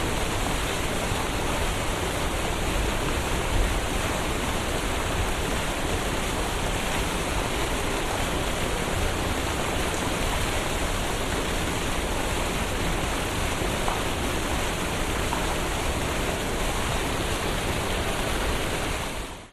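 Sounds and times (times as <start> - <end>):
water fountain on a city street at night in Brisbane: 0.0 - 19.5.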